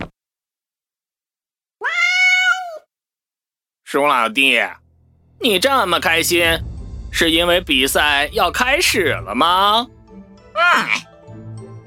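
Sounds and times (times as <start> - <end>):
cat meowing after being woken: 1.8 - 2.9
speech: 3.9 - 4.8, 5.4 - 10.0, 10.6 - 11.1.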